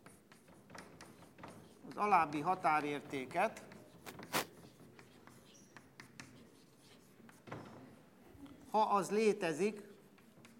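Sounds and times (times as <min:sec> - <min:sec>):
pen scratching as a mathematical limit is written by hand: 0:00.0 - 0:07.5, 0:09.9 - 0:10.5
pen tap: 0:00.3 - 0:02.0, 0:03.6 - 0:06.4
speech: 0:02.0 - 0:03.7, 0:08.7 - 0:09.9.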